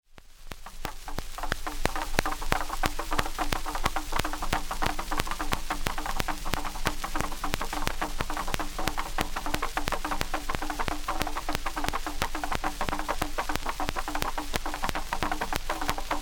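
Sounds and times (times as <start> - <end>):
drum: 0.1 - 16.2.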